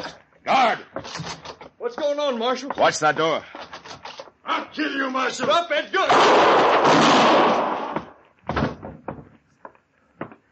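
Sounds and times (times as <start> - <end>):
speech: 0.0 - 3.6, 4.5 - 7.7
shotgun blast: 6.1 - 8.0.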